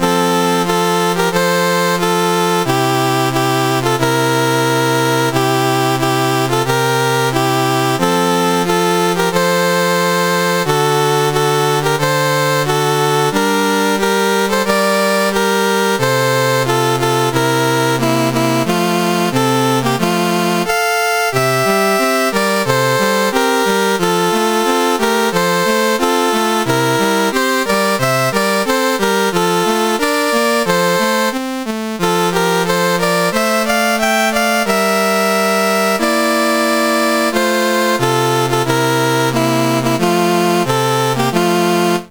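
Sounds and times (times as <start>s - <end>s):
CSG8580R5 chiptune national anthem: 0.0s - 42.0s.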